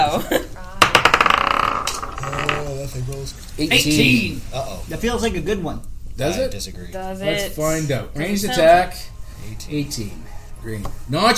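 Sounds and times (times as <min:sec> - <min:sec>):
dice rolling in a bowl: 0:00.8 - 0:02.9
speech: 0:03.2 - 0:11.3.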